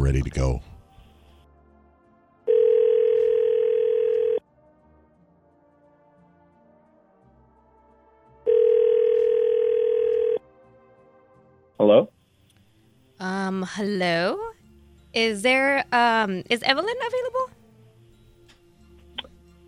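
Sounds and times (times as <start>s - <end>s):
speech: 0.1s - 0.7s, 13.5s - 14.5s, 15.1s - 17.6s
ringback tone of an outgoing telephone call: 2.5s - 4.4s, 8.5s - 10.4s.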